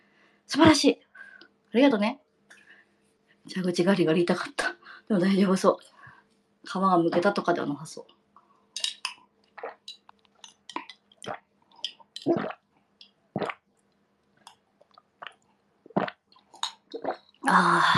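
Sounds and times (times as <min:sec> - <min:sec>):
speech: 0:00.5 - 0:01.1, 0:01.7 - 0:02.2, 0:03.5 - 0:05.9, 0:06.6 - 0:08.2, 0:17.5 - 0:17.9
person gulping down a drink: 0:08.8 - 0:13.7, 0:14.4 - 0:17.9
small clicks and squishy mouth sounds: 0:09.1 - 0:13.6, 0:14.4 - 0:17.4.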